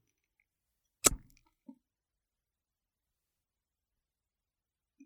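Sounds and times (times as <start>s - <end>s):
deep kissing: 1.0s - 1.2s.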